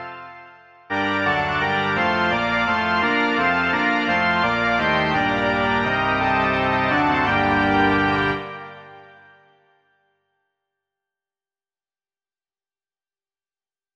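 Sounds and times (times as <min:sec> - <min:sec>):
organ: 0:00.0 - 0:09.5.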